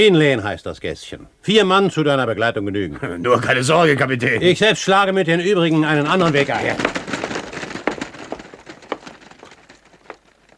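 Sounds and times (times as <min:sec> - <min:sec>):
speech: 0:00.0 - 0:07.0
footsteps crunching on gravel: 0:06.0 - 0:10.5.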